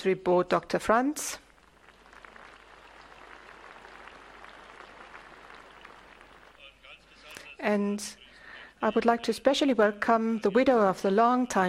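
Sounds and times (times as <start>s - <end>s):
speech: 0.0s - 1.4s, 7.6s - 8.2s, 8.8s - 11.6s
audience applause at a Siemens corporate gathering: 1.6s - 7.0s.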